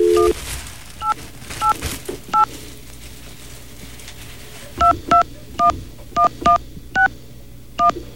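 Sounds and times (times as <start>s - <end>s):
touch-tone dialing key presses: 0.0s - 0.4s, 4.8s - 7.1s, 7.8s - 8.0s
faint steady telephone line hum: 0.0s - 8.1s.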